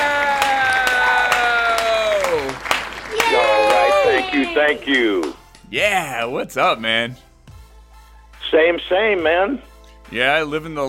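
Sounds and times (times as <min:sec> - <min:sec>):
audience applause welcoming a guest onto a stage: 0:00.0 - 0:05.4
speech: 0:04.5 - 0:07.3, 0:08.5 - 0:10.8.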